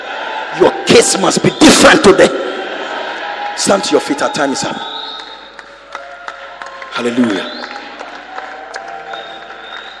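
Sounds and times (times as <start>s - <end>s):
speech: 0.5s - 2.6s, 3.6s - 5.2s, 7.0s - 7.6s
audience clapping: 3.1s - 9.9s.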